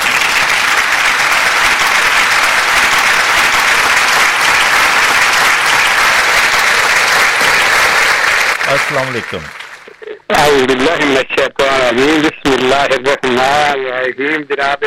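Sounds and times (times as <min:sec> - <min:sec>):
applause welcoming a guest: 0:00.0 - 0:10.5
speech: 0:08.7 - 0:09.6, 0:10.3 - 0:14.8.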